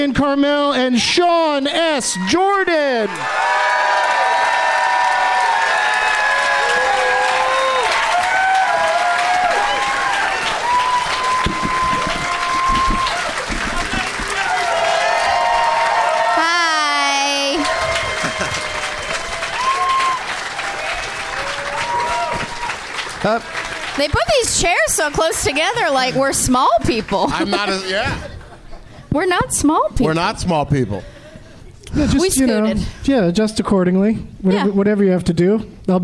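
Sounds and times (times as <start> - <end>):
speech: 0.0 - 3.8, 23.2 - 28.3, 29.2 - 31.1, 31.9 - 36.0
audience cheering and whoops: 1.9 - 24.0
loud sustained audience applause: 2.2 - 28.0
laughter: 18.1 - 19.2, 27.0 - 29.1.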